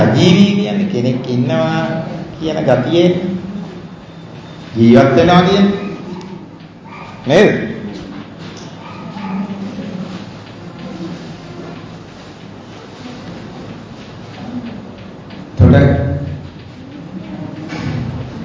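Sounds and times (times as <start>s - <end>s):
speech: 0.2s - 3.4s, 4.7s - 5.8s, 7.2s - 7.7s, 15.8s - 16.0s
dog barking: 5.7s - 7.3s, 8.8s - 9.6s.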